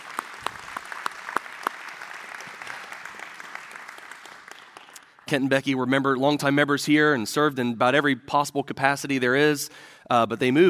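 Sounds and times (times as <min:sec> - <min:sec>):
church congregation applause welcoming a couple back for a Sunday service: 0:00.0 - 0:05.5
speech: 0:05.3 - 0:10.6.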